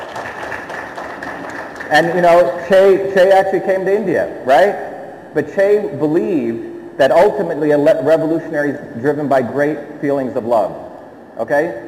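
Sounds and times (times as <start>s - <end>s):
audience clapping: 0.0s - 2.2s
speech: 1.9s - 10.8s, 11.4s - 11.8s.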